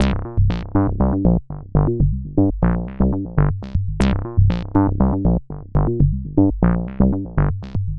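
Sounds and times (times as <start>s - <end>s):
proto-techno bassline: 0.0s - 7.9s.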